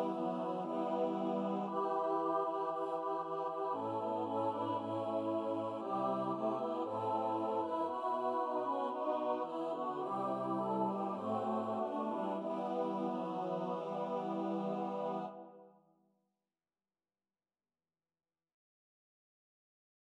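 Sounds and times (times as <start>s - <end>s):
choral mass: 0.0s - 15.6s.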